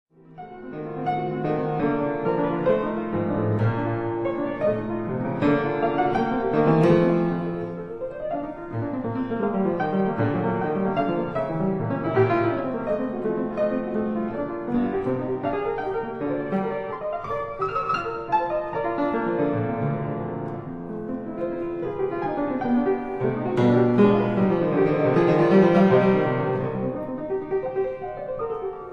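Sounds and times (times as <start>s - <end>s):
piano etude: 0.1s - 28.9s.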